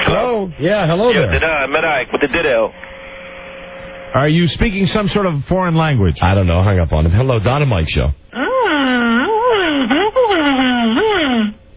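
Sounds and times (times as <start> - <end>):
speech: 0.4 - 2.9, 4.1 - 8.4, 9.8 - 10.0
man imitating a siren: 8.3 - 11.6.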